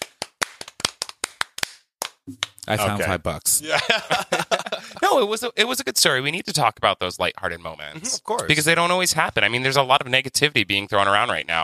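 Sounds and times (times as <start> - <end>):
hand claps: 0.0 - 2.9
speech: 2.3 - 11.6
laughter: 2.8 - 5.4.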